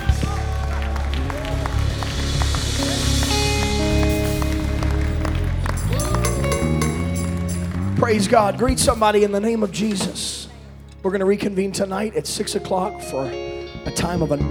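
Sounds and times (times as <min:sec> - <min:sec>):
crowd shouting praise: 0:00.0 - 0:09.6
large crowd clapping: 0:00.0 - 0:11.0
speech: 0:08.1 - 0:10.4, 0:11.0 - 0:14.4.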